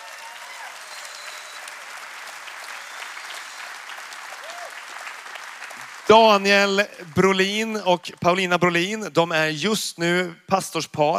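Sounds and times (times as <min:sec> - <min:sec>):
audience applause: 0:00.0 - 0:07.9
speech: 0:06.1 - 0:11.1.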